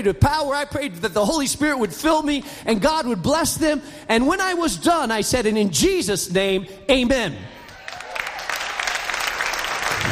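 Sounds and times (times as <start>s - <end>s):
speech: 0.0s - 7.6s
audience clapping during a sermon: 7.6s - 10.1s.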